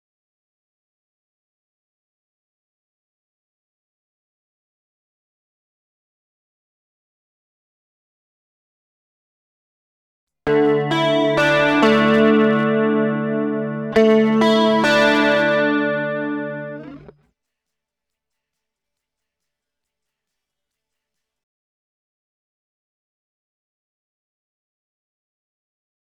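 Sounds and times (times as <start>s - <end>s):
mild lead guitar: 10.5s - 17.1s.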